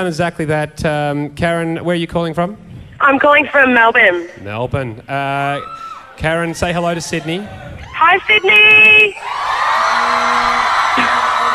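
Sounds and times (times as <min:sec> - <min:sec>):
speech: 0:00.0 - 0:11.2
crowd of thousands cheering and whooping: 0:05.6 - 0:11.5.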